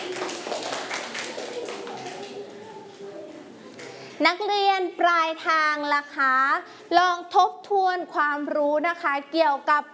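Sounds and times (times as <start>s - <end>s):
children clapping: 0.0s - 2.6s
speech: 4.2s - 9.9s.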